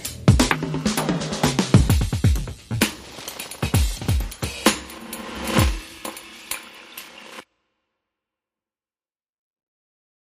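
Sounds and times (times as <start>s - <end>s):
drum beats: 0.0s - 7.4s.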